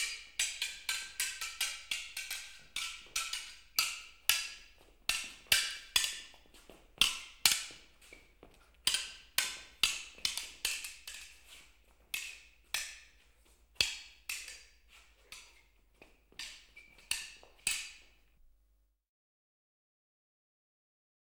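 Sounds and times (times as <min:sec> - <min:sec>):
swordfight general atmosphere: 0:00.0 - 0:08.3, 0:08.9 - 0:15.7, 0:16.4 - 0:18.2.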